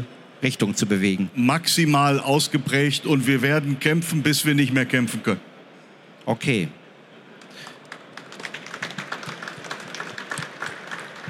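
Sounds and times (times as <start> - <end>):
speech: 0.4 - 5.5, 6.3 - 6.8
audience applause: 7.4 - 11.2.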